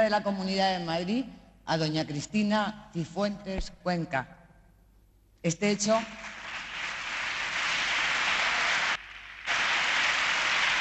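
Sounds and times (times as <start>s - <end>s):
speech: 0.0s - 4.4s, 5.4s - 6.4s
applause: 6.0s - 10.8s.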